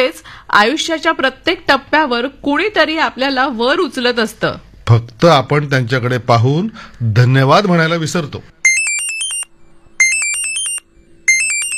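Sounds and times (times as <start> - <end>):
speech: 0.0 - 8.6
phone ringtone: 8.6 - 11.7.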